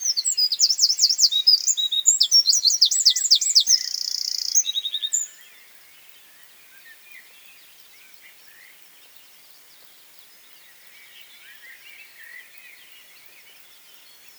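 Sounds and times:
Eurasian wren Troglodytes troglodytes singing: 0:00.0 - 0:05.4.

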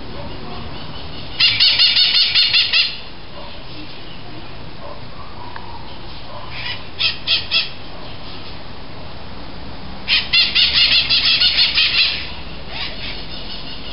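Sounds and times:
bird chattering: 0:00.1 - 0:03.1, 0:05.9 - 0:07.9, 0:10.1 - 0:13.9.

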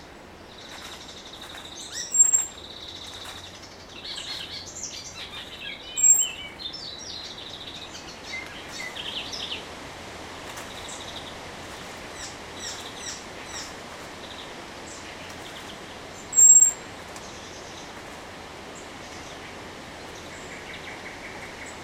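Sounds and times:
chorus of other songbirds: 0:00.0 - 0:21.8
common blackbird thin high whistle: 0:16.4 - 0:16.8.

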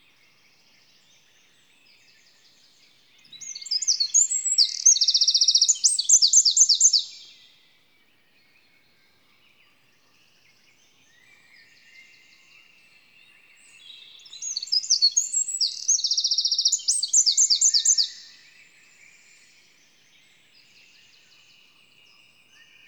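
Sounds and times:
Eurasian wren song trills: 0:02.0 - 0:07.5, 0:10.9 - 0:22.8.

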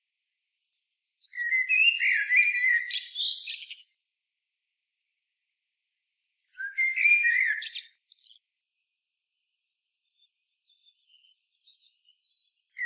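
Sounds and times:
common blackbird singing: 0:00.6 - 0:03.9, 0:06.6 - 0:08.4, 0:10.1 - 0:12.8.

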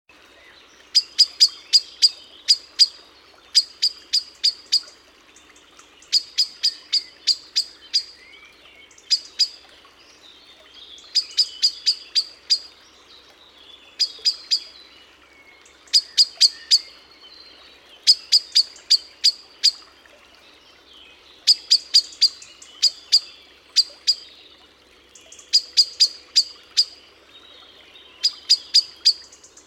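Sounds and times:
Eurasian blackbird chinking calls: 0:00.9 - 0:09.6, 0:10.8 - 0:12.7, 0:14.0 - 0:14.8, 0:15.6 - 0:17.0, 0:18.0 - 0:19.9, 0:21.4 - 0:24.3, 0:25.2 - 0:29.6.

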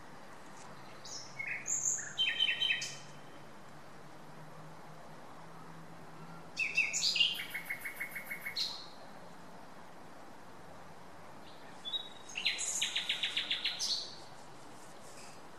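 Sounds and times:
common nightingale Luscinia megarhynchos singing whistled rattling and clicking phrases: 0:00.8 - 0:03.4, 0:06.6 - 0:09.0, 0:11.4 - 0:14.3.

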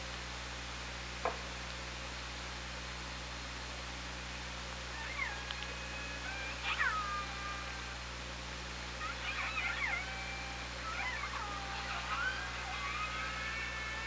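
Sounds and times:
low hum: 0:00.0 - 0:14.0
killer whale pulsed calls: 0:04.9 - 0:08.0, 0:09.0 - 0:14.0.

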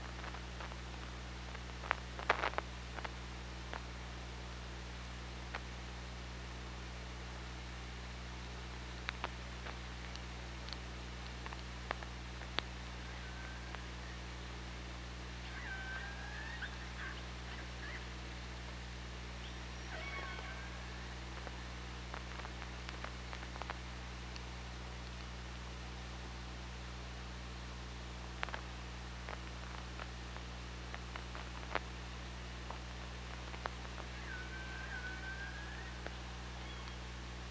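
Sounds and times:
low underwater hum: 0:00.0 - 0:37.4
orca calls: 0:19.8 - 0:21.1, 0:34.1 - 0:36.0.

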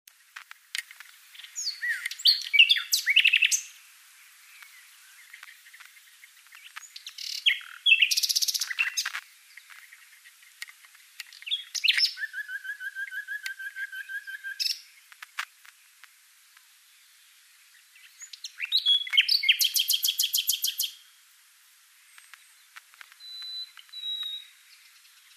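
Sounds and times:
common nightingale singing: 0:00.8 - 0:15.3, 0:16.8 - 0:21.2, 0:21.9 - 0:25.3.

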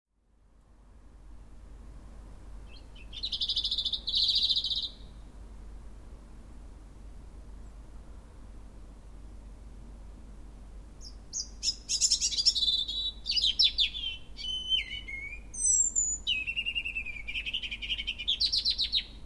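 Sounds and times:
European robin singing: 0:02.6 - 0:05.2, 0:11.0 - 0:19.2.

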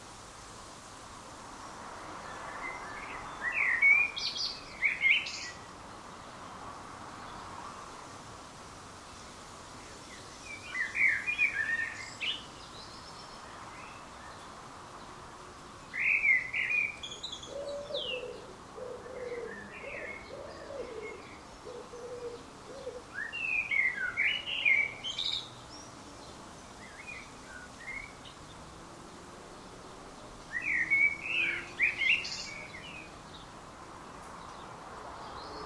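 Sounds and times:
common blackbird singing: 0:02.6 - 0:05.6, 0:10.4 - 0:14.1, 0:15.9 - 0:25.9, 0:26.8 - 0:28.4, 0:30.5 - 0:33.5.

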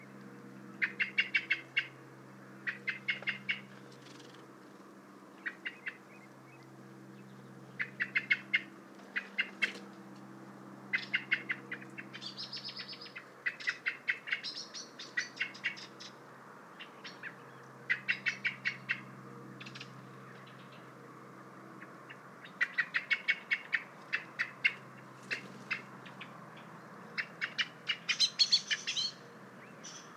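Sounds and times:
common blackbird chinking: 0:00.8 - 0:01.9, 0:02.6 - 0:03.7, 0:05.4 - 0:06.6, 0:07.2 - 0:09.7, 0:10.9 - 0:16.2, 0:16.8 - 0:20.8, 0:22.4 - 0:30.1.

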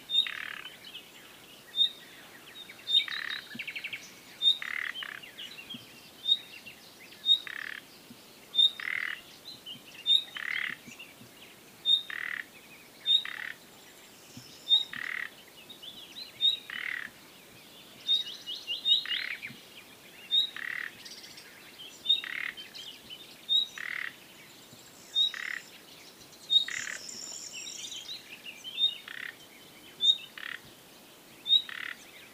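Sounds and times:
Common nightingale whistle and croak calls: 0:00.0 - 0:00.8, 0:01.7 - 0:07.9, 0:08.5 - 0:09.3, 0:10.0 - 0:11.0, 0:11.8 - 0:13.6, 0:14.4 - 0:15.4, 0:16.2 - 0:17.2, 0:18.0 - 0:19.6, 0:20.2 - 0:22.9, 0:23.5 - 0:24.2, 0:25.1 - 0:25.8, 0:26.4 - 0:30.7, 0:31.4 - 0:32.3
faint chirps of other birds: 0:00.1 - 0:30.7, 0:31.4 - 0:32.3.

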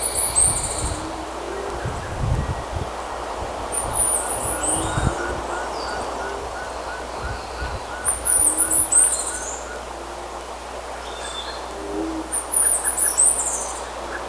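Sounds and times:
steady noisy background: 0:00.0 - 0:14.2
bird calls, thin high chirps: 0:03.8 - 0:09.8, 0:11.0 - 0:11.7, 0:12.4 - 0:13.9.

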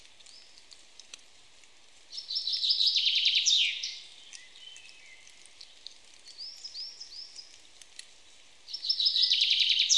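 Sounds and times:
common chaffinch Fringilla coelebs singing: 0:02.1 - 0:07.6, 0:08.6 - 0:09.9.

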